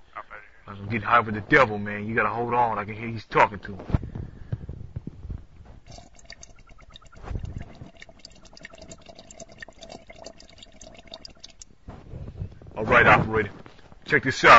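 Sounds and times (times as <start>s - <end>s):
speech: 0.8s - 4.0s, 14.1s - 14.5s
bong water bubbling during a hit: 5.7s - 11.9s.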